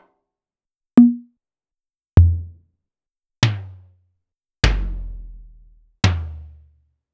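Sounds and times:
Clavia DDrum AT electronic drum pitched down: 1.0s - 1.3s, 2.2s - 2.6s, 4.7s - 6.5s.

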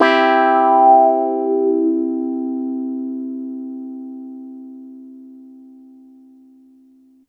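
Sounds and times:
piano and clavinet in major key: 0.0s - 5.1s.

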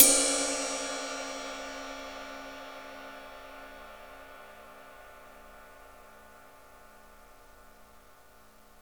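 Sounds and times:
cymbal: 0.0s - 8.7s.

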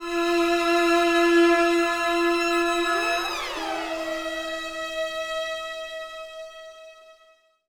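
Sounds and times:
orchestral string accent: 0.0s - 6.5s.

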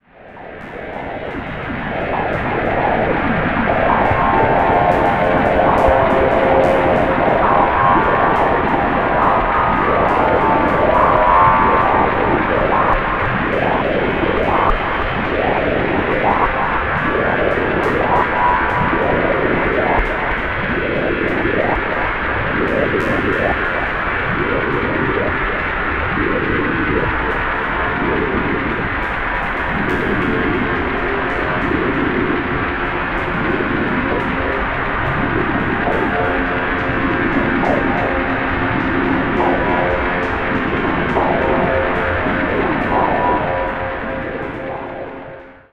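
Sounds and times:
ear fuzz noise: 0.0s - 45.7s.

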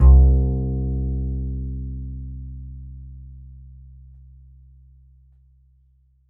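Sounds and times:
upright acoustic bass A string note: 0.0s - 4.5s.

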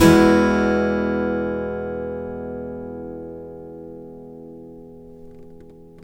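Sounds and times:
blues guitar in E major: 0.0s - 6.0s.

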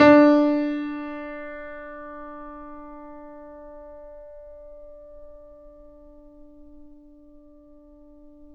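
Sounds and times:
grand piano D3 note played mezzo-forte off mic: 0.0s - 4.9s.

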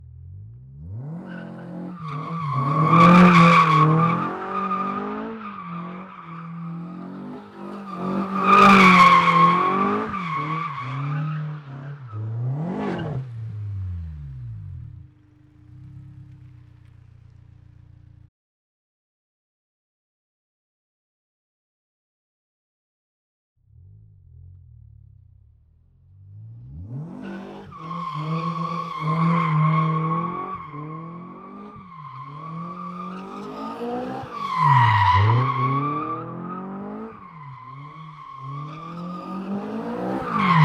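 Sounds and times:
Honda S2000 circling: 0.4s - 18.3s, 26.3s - 40.6s.

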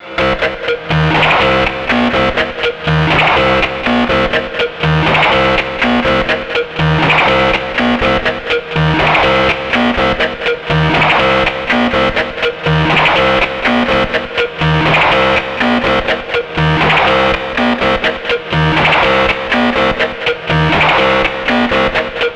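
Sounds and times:
C5 synth line: 0.0s - 22.2s.

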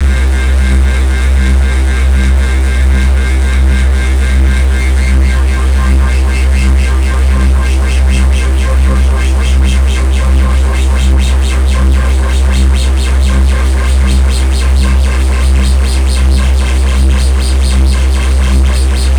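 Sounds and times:
Venus synth bass with mod wheel action: 0.0s - 19.1s.

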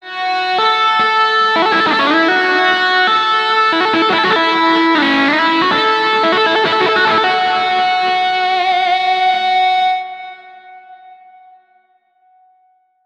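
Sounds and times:
guitar: 0.0s - 12.7s.

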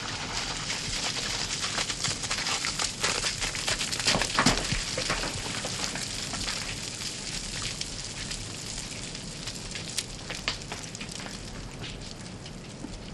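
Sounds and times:
rockfall on the glacier: 0.1s - 11.7s.

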